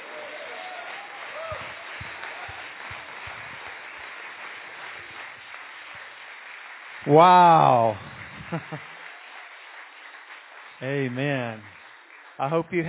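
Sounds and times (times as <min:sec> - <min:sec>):
audience shouting: 0:00.0 - 0:02.8
audience clapping: 0:00.0 - 0:12.8
speech: 0:07.0 - 0:08.9, 0:10.8 - 0:11.8, 0:12.4 - 0:12.8.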